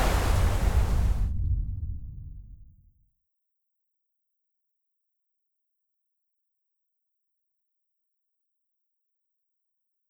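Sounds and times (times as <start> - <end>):
Perito Moreno glacier calving: 0.0 - 2.2.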